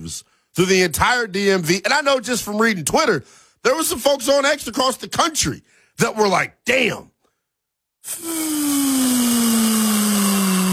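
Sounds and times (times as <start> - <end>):
speech: 0.0 - 7.1, 8.0 - 10.2
air being let out of a balloon: 8.0 - 10.7.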